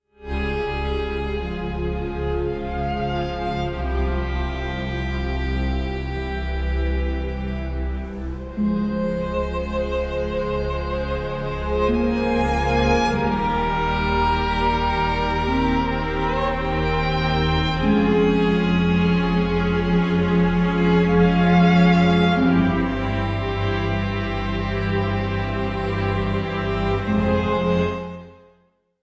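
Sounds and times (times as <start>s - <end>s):
concerto in F minor for violin and orchestra: 0.1s - 28.5s.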